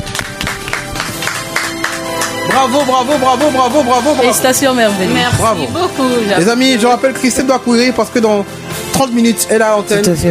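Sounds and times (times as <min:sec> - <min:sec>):
studio audience applauding the candidates: 0:00.0 - 0:06.4
sustained tonal music: 0:00.0 - 0:10.2
speech: 0:02.6 - 0:10.2.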